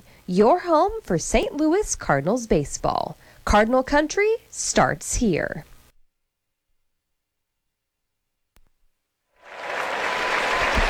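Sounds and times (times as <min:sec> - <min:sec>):
speech: 0:00.3 - 0:05.7
large stadium crowd applauding a returning player: 0:09.4 - 0:10.8.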